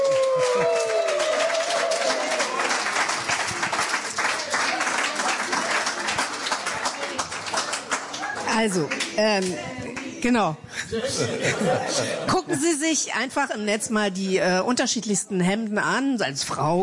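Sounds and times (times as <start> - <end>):
audience applause: 0.0 - 10.1
speech: 8.6 - 16.8
laughter: 10.7 - 12.8.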